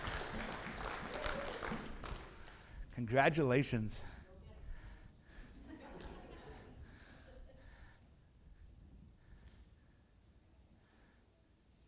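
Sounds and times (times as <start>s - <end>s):
crowd applause for graduates: 0.0s - 2.7s
speech: 3.0s - 4.1s
laughter: 5.6s - 7.7s.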